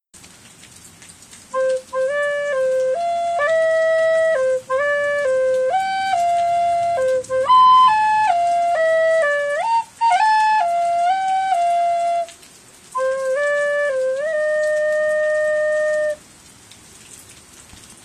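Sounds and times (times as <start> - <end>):
recorder melody: 1.6 - 12.4, 13.0 - 16.2.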